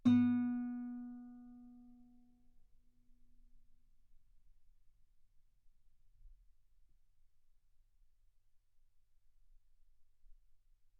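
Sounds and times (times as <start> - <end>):
guitar note B3: 0.0 - 1.7.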